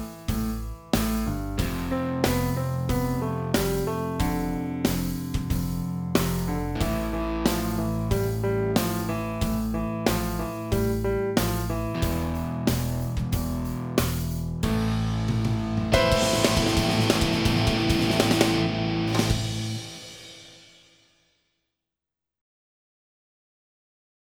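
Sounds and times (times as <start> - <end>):
heavy metal music: 0.0 - 20.5.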